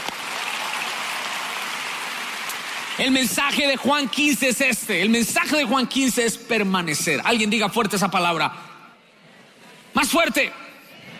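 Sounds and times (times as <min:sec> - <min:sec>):
audience applauding: 0:00.0 - 0:03.6
speech: 0:03.0 - 0:08.7, 0:10.0 - 0:10.6.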